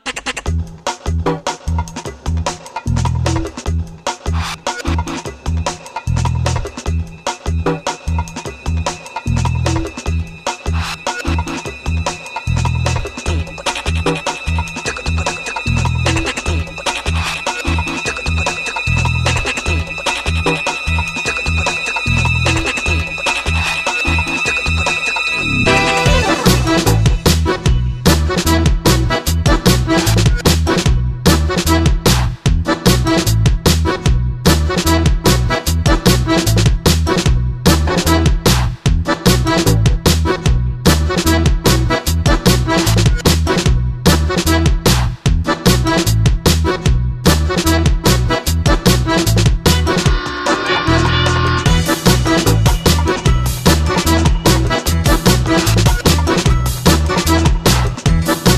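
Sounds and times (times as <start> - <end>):
electronic beat: 0.0 - 58.5.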